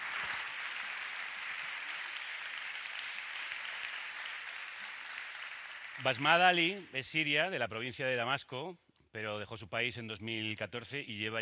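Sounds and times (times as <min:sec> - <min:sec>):
audience applause: 0:00.0 - 0:07.0
speech: 0:06.0 - 0:11.4.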